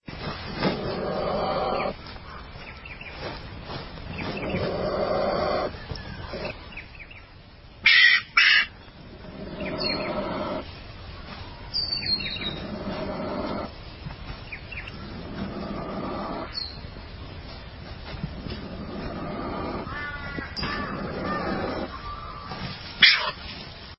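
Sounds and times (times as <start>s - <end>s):
spotted-tailed quoll: 0.2s - 2.6s, 3.2s - 6.6s, 7.9s - 10.7s, 11.8s - 13.8s, 14.8s - 16.6s, 18.1s - 23.4s.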